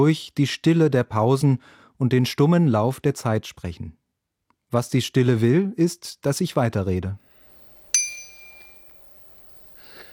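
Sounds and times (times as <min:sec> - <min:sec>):
speech: 0:00.0 - 0:04.0, 0:04.7 - 0:07.2
BBB 120 bicycle bell ringing: 0:08.0 - 0:09.4.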